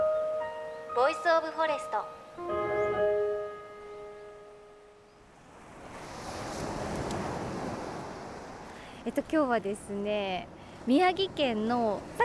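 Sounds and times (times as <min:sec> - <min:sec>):
short musical chord: 0:00.0 - 0:05.1
ocean waves washing onto a beach: 0:00.8 - 0:12.2
speech: 0:01.0 - 0:02.8, 0:09.0 - 0:12.2.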